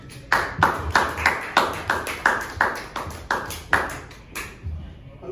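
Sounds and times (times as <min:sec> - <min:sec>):
audience clapping: 0:00.0 - 0:04.6.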